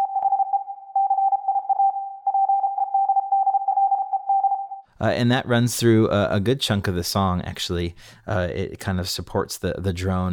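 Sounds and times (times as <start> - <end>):
Morse code beeps: 0.0 - 4.8
speech: 5.0 - 10.3.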